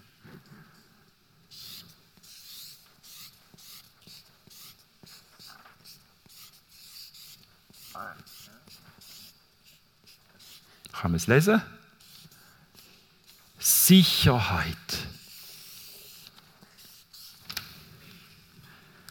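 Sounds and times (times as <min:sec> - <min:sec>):
handwriting scratching across a surface: 0:01.5 - 0:10.8, 0:12.0 - 0:13.7, 0:15.2 - 0:17.6
speech: 0:11.0 - 0:11.8, 0:13.9 - 0:14.8.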